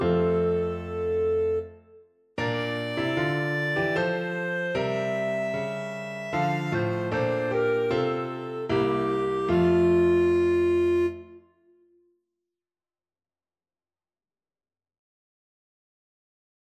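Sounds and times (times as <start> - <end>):
clarinet: 0.0 - 11.8.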